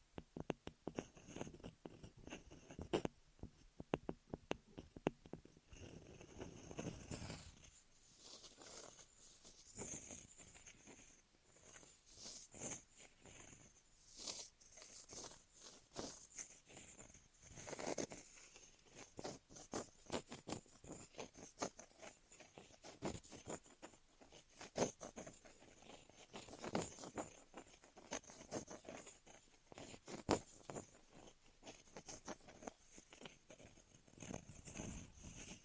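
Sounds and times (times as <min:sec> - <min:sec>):
ear massage rubbing and scratching: 0:00.0 - 0:35.6.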